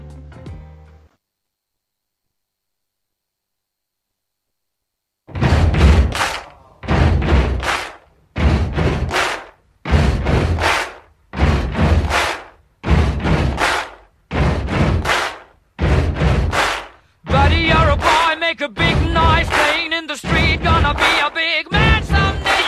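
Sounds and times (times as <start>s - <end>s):
feet stomping: 5.3s - 22.6s
people clapping: 5.5s - 22.6s
people singing: 17.3s - 22.6s.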